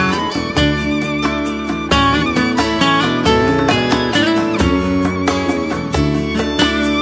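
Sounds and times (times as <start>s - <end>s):
improvisational violin playing with a Christian band: 0.2s - 7.0s
Christian band playing: 3.2s - 5.2s.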